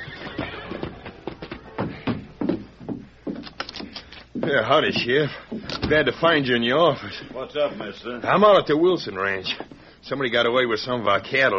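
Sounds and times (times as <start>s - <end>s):
horse whinnying and snorting as rider reins in: 0.0s - 0.8s
horse hooves clattering, slowing and stamping: 0.0s - 6.0s
speech: 4.4s - 11.5s.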